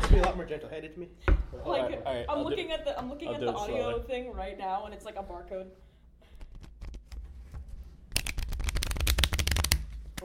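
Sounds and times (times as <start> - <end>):
speech: 0.2 - 5.9
playing cards shuffled and bridged: 6.4 - 10.2.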